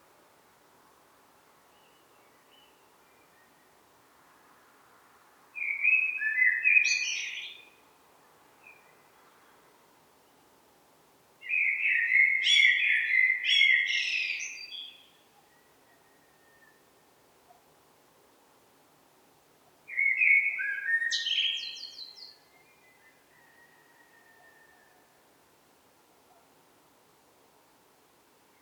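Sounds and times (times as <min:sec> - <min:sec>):
common blackbird singing: 0:05.6 - 0:07.6, 0:11.4 - 0:15.1, 0:19.9 - 0:24.0.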